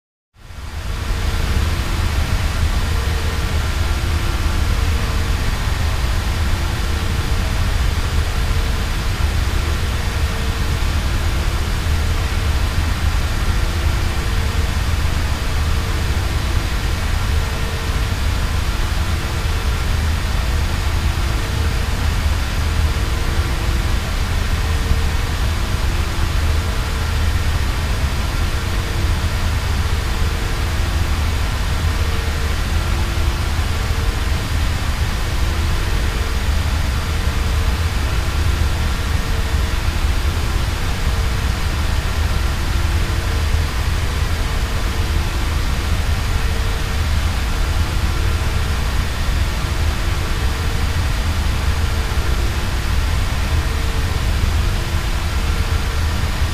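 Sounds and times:
spaceship engine room ambience: 0:00.5 - 0:56.5.

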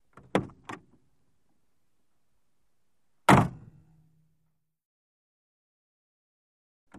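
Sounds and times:
Buick car door opening and closing: 0:00.1 - 0:01.0, 0:03.3 - 0:03.7.

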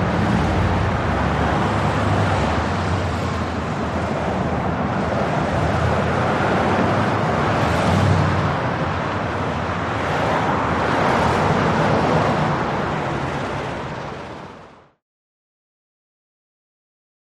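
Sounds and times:
highway traffic rushing: 0:00.0 - 0:15.0.

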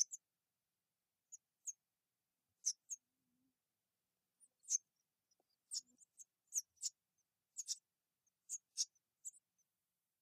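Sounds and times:
baby wrens peeping in a nest: 0:00.0 - 0:00.3, 0:01.3 - 0:01.8, 0:02.6 - 0:03.1, 0:04.4 - 0:09.7.

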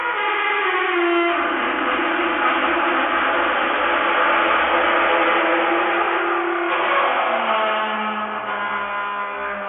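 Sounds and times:
ghost sounds: 0:00.2 - 0:09.5
high velocity vortex whoosh: 0:01.4 - 0:06.0.

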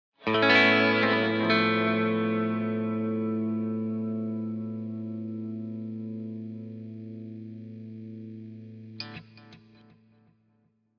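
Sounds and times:
electric guitar: 0:00.2 - 0:10.4.

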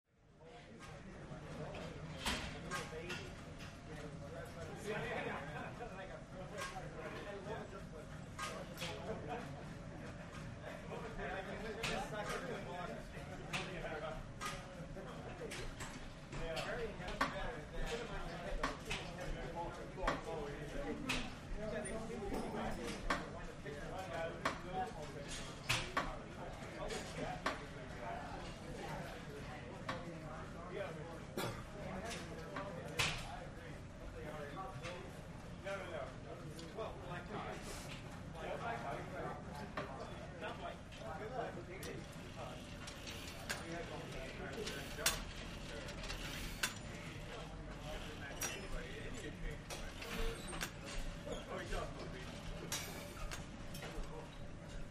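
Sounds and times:
male walla in a gym weight room: 0:00.9 - 0:54.8
gym weight room machine movement: 0:44.6 - 0:46.9.

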